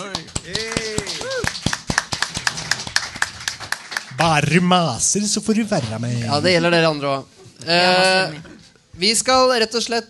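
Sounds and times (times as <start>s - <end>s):
applause: 0.0s - 4.3s
person whooping: 0.5s - 1.6s
speech: 4.2s - 10.0s.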